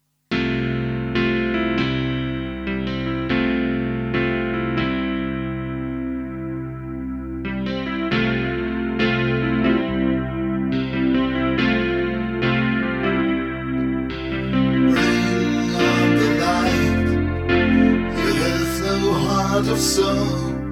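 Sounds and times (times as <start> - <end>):
Eventide H3000 rich chorus on electric grand piano: 0.6 - 20.7.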